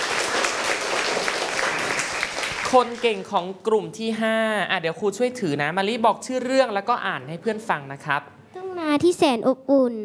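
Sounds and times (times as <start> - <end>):
classroom applause: 0.0 - 3.2
speech: 2.7 - 8.4, 9.0 - 10.0.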